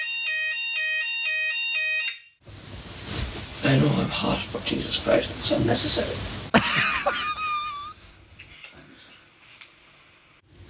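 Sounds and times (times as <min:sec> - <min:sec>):
fire alarm going off: 0:00.0 - 0:02.4
speech: 0:03.7 - 0:07.2
laughter: 0:06.6 - 0:08.0.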